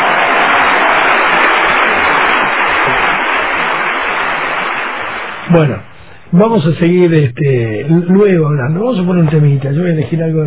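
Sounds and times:
applause: 0.0s - 5.7s
speech: 5.5s - 10.4s.

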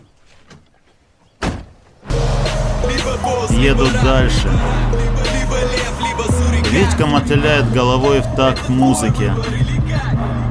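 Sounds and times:
car door as a man gets into the driver's seat: 1.4s - 1.9s
speech: 3.1s - 10.4s.

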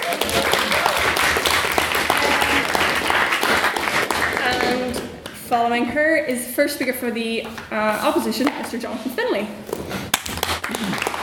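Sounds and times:
crowd applauding: 0.0s - 5.1s, 10.2s - 11.2s
speech: 5.5s - 9.9s.

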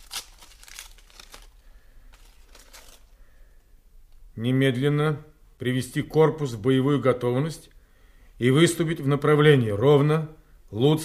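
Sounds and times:
sealed paper envelope of orders being torn open: 0.0s - 3.1s
speech: 4.4s - 7.7s, 8.4s - 11.0s.

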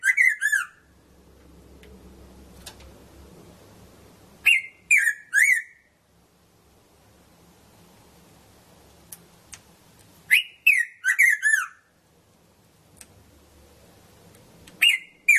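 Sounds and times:
red-throated parrotfinch Erythrura psittacea calling: 0.0s - 0.8s, 4.4s - 5.9s, 10.3s - 11.9s, 14.8s - 15.3s.

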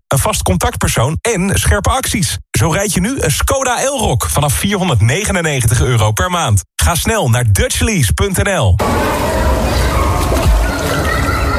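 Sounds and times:
speech: 0.1s - 9.4s
water splashing as a child dives in: 8.8s - 11.5s.

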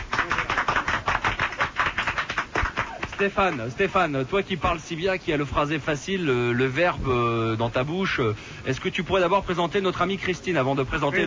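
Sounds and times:
audience applause: 0.0s - 3.8s
speech: 3.2s - 11.2s.

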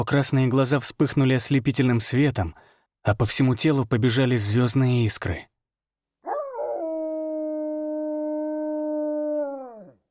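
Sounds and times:
speech: 0.0s - 5.5s
star wolf howling: 6.2s - 10.0s.

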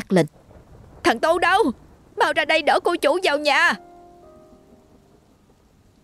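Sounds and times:
heavy rain: 0.0s - 6.0s
speech: 0.1s - 0.4s, 1.0s - 3.9s
faint sustained tone: 2.7s - 6.0s.

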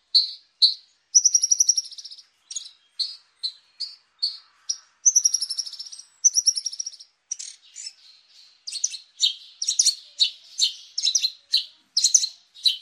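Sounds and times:
Horsfield's bushlark song with high chirped notes: 0.0s - 12.8s.

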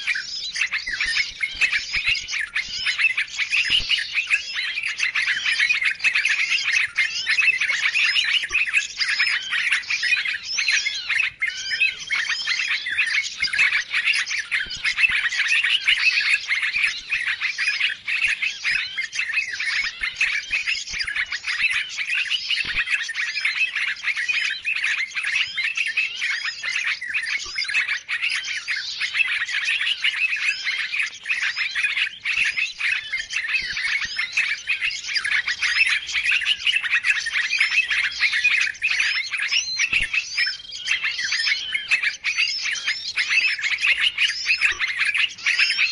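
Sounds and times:
birds chirping: 0.0s - 45.9s.

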